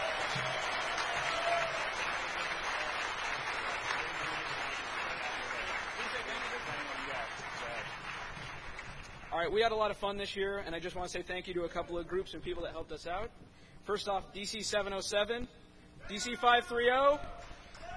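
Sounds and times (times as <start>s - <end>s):
audience applause: 0.0s - 9.3s
speech: 9.4s - 17.5s.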